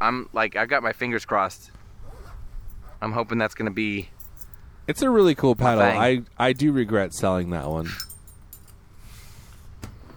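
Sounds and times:
speech: 0:00.0 - 0:01.8, 0:03.0 - 0:04.2, 0:04.9 - 0:08.1
keys jingling: 0:02.1 - 0:08.9.

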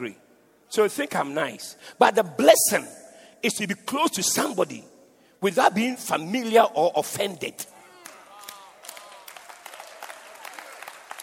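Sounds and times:
speech: 0:00.0 - 0:07.7
audience clapping: 0:08.0 - 0:11.2.

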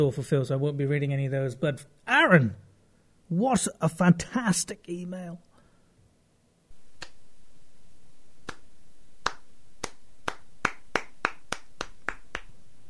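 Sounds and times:
speech: 0:00.0 - 0:02.7, 0:03.3 - 0:05.5
slow clap: 0:07.0 - 0:07.2, 0:08.4 - 0:12.6.

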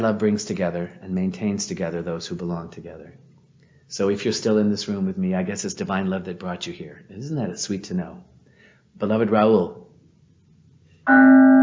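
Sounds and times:
speech: 0:00.0 - 0:03.3, 0:03.9 - 0:08.3, 0:09.0 - 0:09.8, 0:11.1 - 0:11.6
mindfulness bell ringing: 0:11.1 - 0:11.6.

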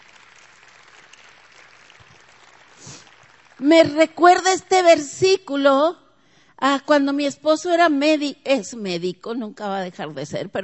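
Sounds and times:
crowd clapping: 0:00.0 - 0:04.2
speech: 0:03.6 - 0:06.0, 0:06.6 - 0:10.6.

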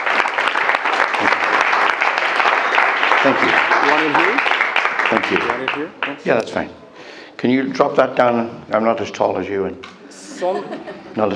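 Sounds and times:
audience applause: 0:00.0 - 0:06.2
speech: 0:03.2 - 0:04.5, 0:05.1 - 0:06.8, 0:07.4 - 0:11.3
laughter: 0:10.1 - 0:11.3.

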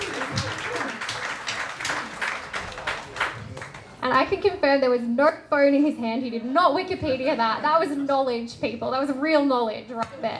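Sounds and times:
audience applause: 0:00.0 - 0:04.0
speech: 0:04.1 - 0:10.3.

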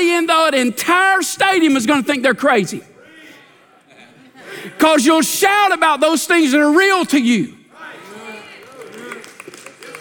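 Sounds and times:
speech: 0:00.0 - 0:02.9, 0:04.8 - 0:07.6
laughter: 0:03.5 - 0:04.8
light polite golf clap from audience: 0:08.5 - 0:09.9.

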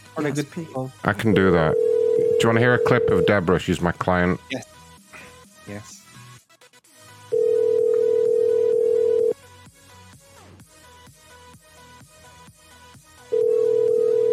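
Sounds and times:
speech: 0:00.2 - 0:04.8, 0:05.7 - 0:06.0
unanswered phone call ringback tones: 0:01.3 - 0:03.5, 0:07.3 - 0:09.4, 0:13.3 - 0:14.3.

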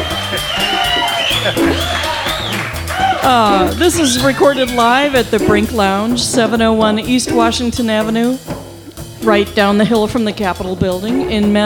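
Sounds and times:
live audience cheering at the Brink Lounge in Madison, Wisconsin: 0:00.0 - 0:06.2
laughter: 0:00.0 - 0:07.8
speech: 0:01.5 - 0:01.9, 0:03.2 - 0:08.6, 0:09.2 - 0:11.6.

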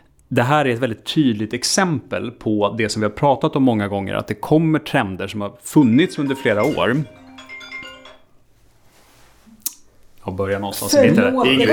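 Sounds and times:
speech: 0:00.3 - 0:07.2, 0:10.3 - 0:11.7
mobile phone ringtone: 0:05.8 - 0:08.4.

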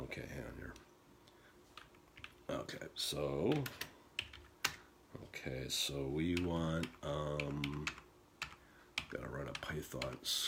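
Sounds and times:
speech: 0:00.2 - 0:00.9, 0:02.5 - 0:03.9, 0:05.2 - 0:08.0, 0:09.1 - 0:10.4
typing on a computer keyboard: 0:03.5 - 0:04.8, 0:06.4 - 0:10.4.

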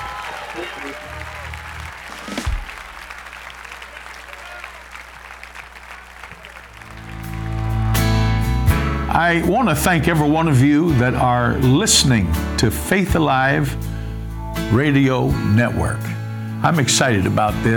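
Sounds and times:
audience clapping hands: 0:00.0 - 0:09.1
speech: 0:09.2 - 0:13.9, 0:14.7 - 0:17.7.

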